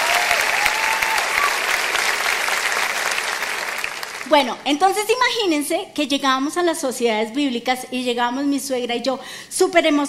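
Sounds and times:
audience applause: 0.0s - 4.4s
speech: 4.3s - 10.0s.

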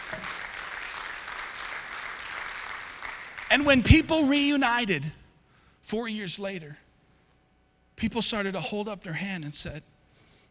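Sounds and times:
audience applause: 0.0s - 3.9s
speech: 3.5s - 5.2s, 5.9s - 6.8s, 8.0s - 9.9s.

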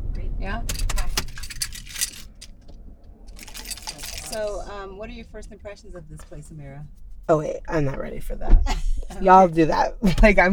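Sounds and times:
car engine turning off: 0.0s - 10.5s
speech: 0.4s - 0.9s, 4.3s - 10.5s
keys jangling: 0.7s - 2.7s, 3.3s - 4.7s.

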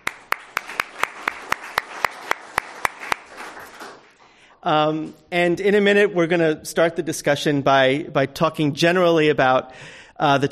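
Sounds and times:
audience applauding panelists at a transportation workforce discussion: 0.0s - 4.2s
speech: 4.6s - 10.5s.

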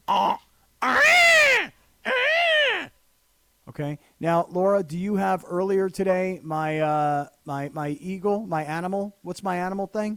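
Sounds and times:
person imitating a peacock call: 0.0s - 3.0s
speech: 0.1s - 0.4s, 3.8s - 10.1s.

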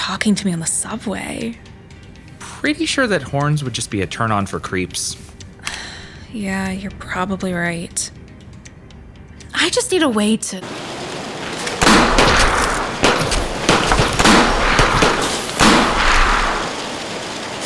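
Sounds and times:
speech: 0.1s - 1.7s, 2.6s - 5.3s, 6.3s - 8.2s, 9.6s - 10.8s
gunshots: 11.8s - 16.9s.

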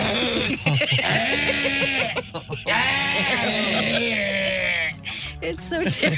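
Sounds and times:
voice imitating throat hacking to remove tonsil stones: 0.0s - 2.2s
laughter: 0.0s - 5.0s, 5.7s - 6.1s
speech: 5.9s - 6.1s.

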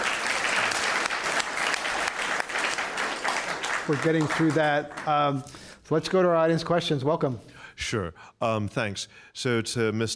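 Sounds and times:
audience applause at a panel discussion: 0.0s - 5.4s
speech: 3.9s - 10.1s.

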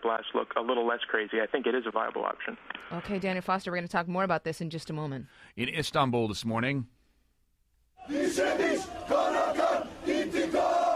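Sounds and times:
speech: 0.1s - 7.0s
hundreds of aid flotilla activists cheering at hero's welcome in Istanbul, Turkey: 8.0s - 10.9s.

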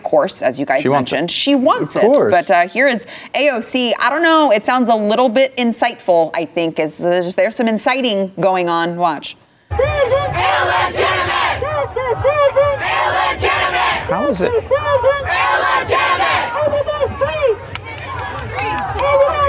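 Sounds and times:
speech: 0.1s - 11.1s, 14.1s - 16.0s
crowd chanting and shouting: 9.7s - 19.4s
crowd rhythmic clapping: 17.5s - 19.3s.

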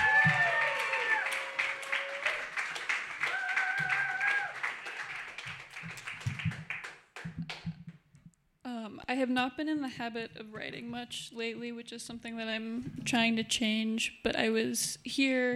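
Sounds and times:
whoops: 0.0s - 2.6s, 3.2s - 4.8s
audience applause for a reader at a reading night: 0.0s - 7.8s
speech: 9.1s - 15.5s.

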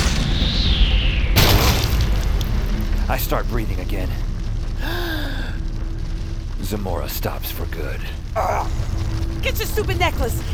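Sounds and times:
debris rumbling: 0.0s - 10.5s
chunk of cement falling and crashing: 1.4s - 2.3s
speech: 3.1s - 5.0s, 6.7s - 10.5s.

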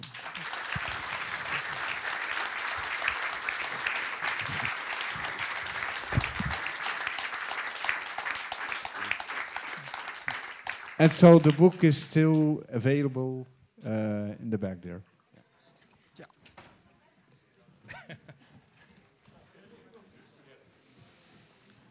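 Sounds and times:
audience applause: 0.0s - 12.2s
speech: 11.0s - 15.1s
laughter: 17.8s - 20.2s.

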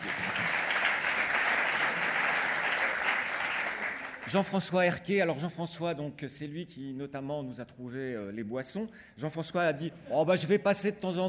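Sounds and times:
audience applause: 0.0s - 4.4s
speech: 4.3s - 11.2s.

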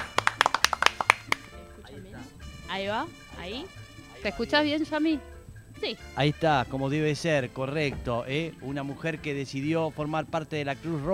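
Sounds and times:
applause: 0.0s - 1.5s
speech: 2.7s - 11.1s.

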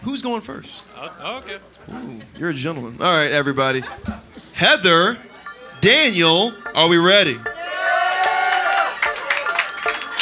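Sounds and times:
speech: 0.1s - 7.5s
audience cheering: 7.5s - 10.1s
scattered claps: 8.2s - 10.1s.

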